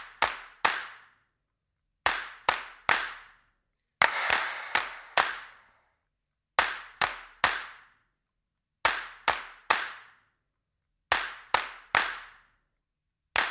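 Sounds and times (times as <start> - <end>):
hands clapping: 0.0 - 1.1, 2.0 - 3.3, 4.0 - 5.7, 6.6 - 7.9, 8.8 - 10.1, 11.1 - 12.4.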